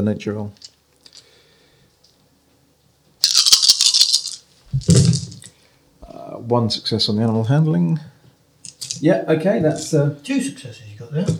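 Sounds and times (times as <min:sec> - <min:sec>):
speech: 0:00.0 - 0:00.7, 0:06.5 - 0:08.1, 0:09.0 - 0:11.3
dice being rolled: 0:03.2 - 0:05.5, 0:08.6 - 0:09.0.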